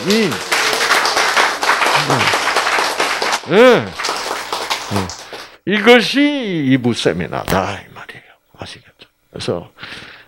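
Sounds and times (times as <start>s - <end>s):
speech: 0.0s - 0.5s, 2.0s - 2.4s, 3.4s - 4.1s, 4.9s - 7.9s, 8.6s - 10.1s
audience applause: 0.0s - 5.6s.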